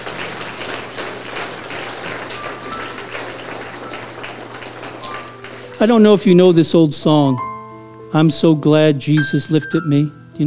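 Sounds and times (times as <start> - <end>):
audience clapping: 0.0 - 6.4
speech: 5.8 - 7.5, 8.1 - 10.4.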